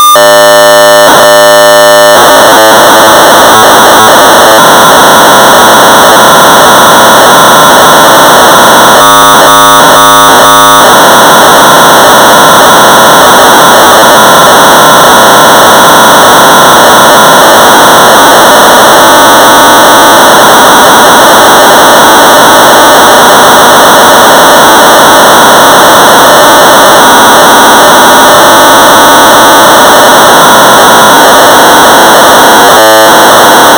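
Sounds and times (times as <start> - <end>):
1200 baud modem data tones: 0.1 - 33.7.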